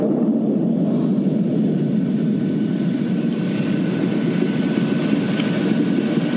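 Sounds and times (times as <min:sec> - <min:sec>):
recorded rumble of distant New Guinea earthquake: 0:00.0 - 0:06.3.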